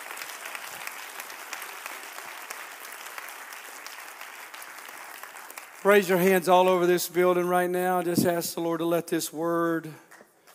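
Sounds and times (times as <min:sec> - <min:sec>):
audience clapping: 0:00.0 - 0:07.7
speech: 0:05.8 - 0:10.0.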